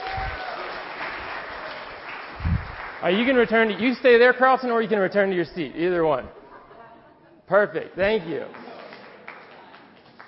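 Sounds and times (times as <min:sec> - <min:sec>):
round of applause: 0:00.0 - 0:04.2, 0:08.0 - 0:10.2
speech: 0:03.0 - 0:06.4, 0:07.5 - 0:08.6.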